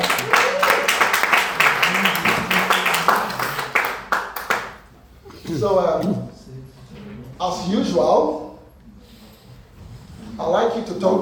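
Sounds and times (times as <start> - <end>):
church congregation clapping: 0.0 - 4.9
speech: 5.6 - 6.3, 7.4 - 8.4, 10.4 - 11.2.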